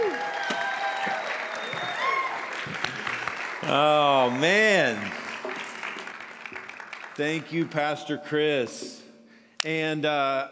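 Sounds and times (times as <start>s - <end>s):
audience applause for a speaker: 0.0s - 8.1s
speech: 3.7s - 5.1s, 7.2s - 9.0s, 9.6s - 10.5s.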